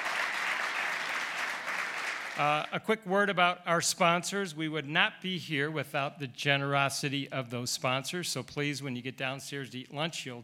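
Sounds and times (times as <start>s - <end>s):
audience applauding to welcome students and thank their sponsors: 0.0s - 2.7s
speech: 2.4s - 10.4s.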